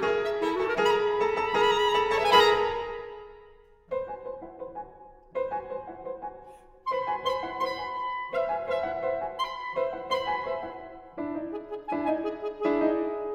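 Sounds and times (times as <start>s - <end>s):
clarinet: 0.0s - 3.7s, 6.8s - 13.3s
pianoforte: 0.0s - 13.3s.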